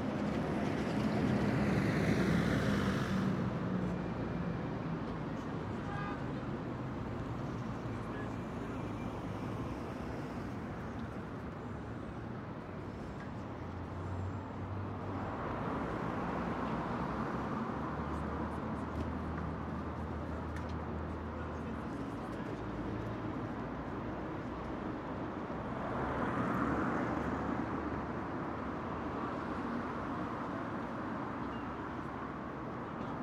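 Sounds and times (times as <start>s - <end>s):
semi distant medium heavy road traffic passing seen from a bridge at midday: 0.0s - 33.2s.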